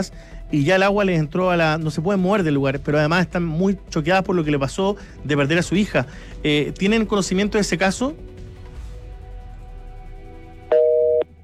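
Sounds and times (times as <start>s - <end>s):
speech: 0.0s - 8.3s
telephone busy tone after call dropped: 10.7s - 11.3s.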